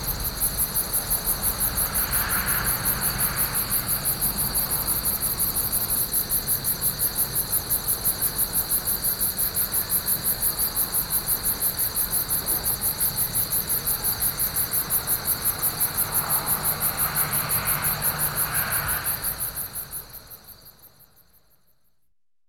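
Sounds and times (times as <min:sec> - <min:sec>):
crickets chirping: 0:00.0 - 0:22.1.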